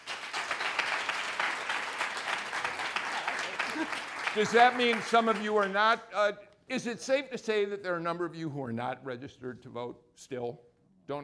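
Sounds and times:
student audience applauding: 0:00.0 - 0:06.0
speech: 0:03.8 - 0:11.2.

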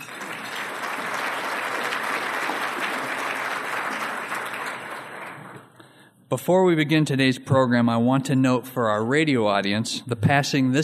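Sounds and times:
audience at a City Club event applauding to thank its sponsors: 0:00.0 - 0:05.7
speech: 0:06.3 - 0:10.8.

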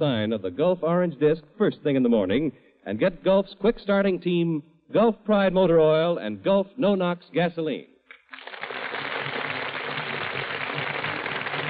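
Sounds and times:
speech: 0:00.0 - 0:08.6
studio audience applause: 0:08.1 - 0:11.6.

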